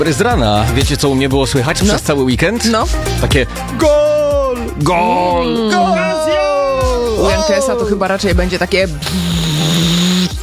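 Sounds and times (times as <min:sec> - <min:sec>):
speech: 0:00.0 - 0:04.1, 0:04.8 - 0:06.4, 0:07.4 - 0:10.0
coffee machine running with a low mechanical hum: 0:09.0 - 0:10.3.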